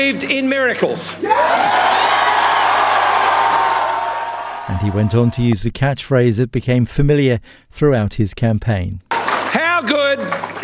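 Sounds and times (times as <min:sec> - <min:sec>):
speech: 0:00.0 - 0:02.3, 0:04.7 - 0:09.0, 0:09.8 - 0:10.6
crowd cheering at the Liberal Party headquarters: 0:01.2 - 0:05.6, 0:09.1 - 0:10.6.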